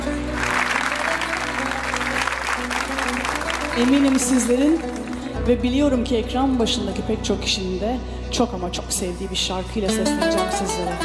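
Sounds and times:
audience applause: 0:00.0 - 0:05.3
speech: 0:03.8 - 0:11.0.

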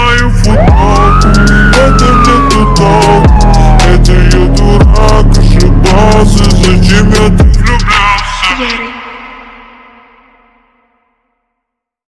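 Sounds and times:
remix bass: 0:00.0 - 0:08.8.

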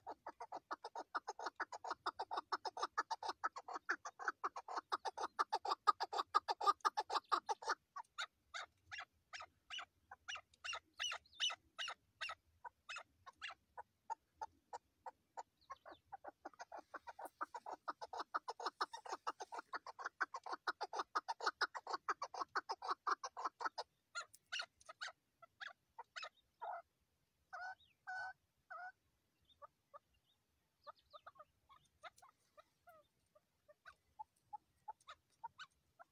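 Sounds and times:
partridge calling: 0:00.0 - 0:26.9, 0:27.5 - 0:36.1.

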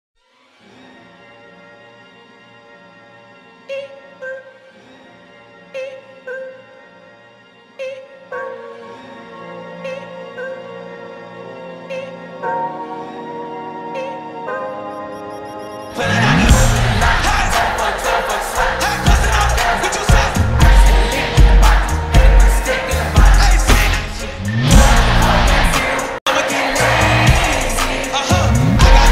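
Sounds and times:
crowd: 0:16.5 - 0:24.0, 0:24.7 - 0:29.1.

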